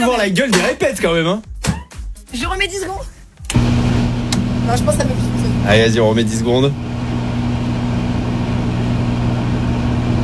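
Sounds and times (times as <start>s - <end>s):
speech: 0.0s - 1.5s, 2.3s - 3.2s, 4.7s - 7.0s
microwave oven running: 3.4s - 10.2s.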